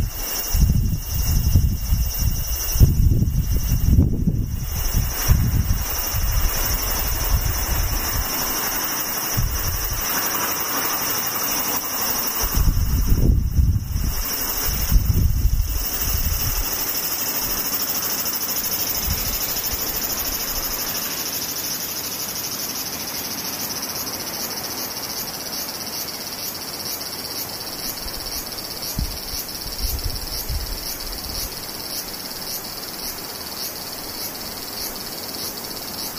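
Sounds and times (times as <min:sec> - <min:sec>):
low wind gusts: 0:00.0 - 0:21.7, 0:27.9 - 0:35.1
cicadas buzzing: 0:00.0 - 0:36.1.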